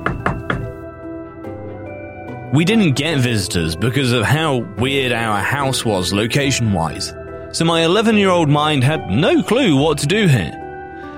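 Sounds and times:
firm knocks on a front door: 0.0s - 0.8s
speech: 2.5s - 10.6s.

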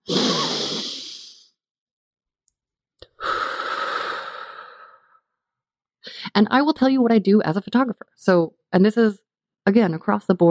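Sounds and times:
long deep breath: 0.0s - 1.5s, 3.0s - 5.2s
speech: 6.4s - 10.4s.

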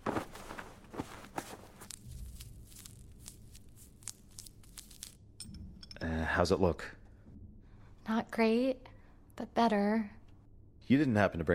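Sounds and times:
bandage unwrapped from a wounded leg: 0.0s - 5.2s
scuffing shuffling steps: 0.0s - 5.2s
speech: 6.4s - 7.0s, 8.2s - 10.2s, 10.9s - 11.5s.

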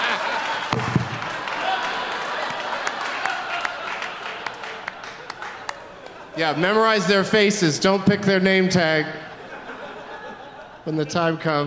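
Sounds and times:
audience clapping: 0.0s - 6.4s
laughter: 0.0s - 7.3s, 8.8s - 11.6s
speech: 6.4s - 9.3s, 10.9s - 11.6s.

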